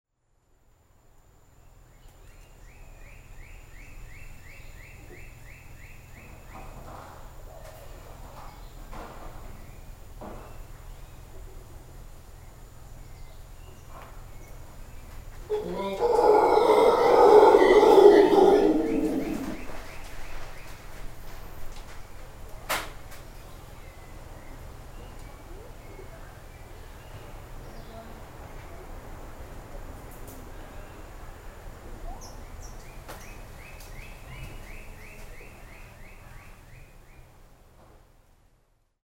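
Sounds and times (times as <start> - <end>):
howler monkeys howling at dusk: 15.5 - 19.9.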